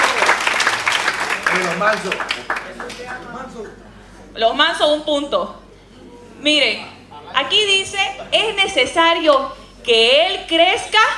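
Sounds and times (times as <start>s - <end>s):
audience applause: 0.0s - 3.2s
speech: 1.8s - 5.6s, 6.4s - 11.1s.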